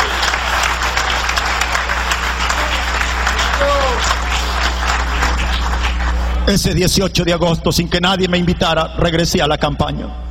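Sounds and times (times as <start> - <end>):
audience applause: 0.0 - 6.5
speech: 6.4 - 10.2.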